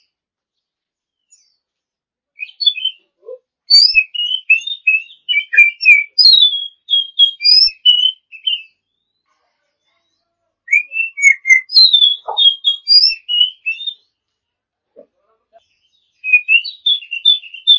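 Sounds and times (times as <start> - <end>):
champion Oriental magpie-robin song: 1.0 - 1.8, 2.4 - 9.2, 9.8 - 14.2, 15.6 - 17.7.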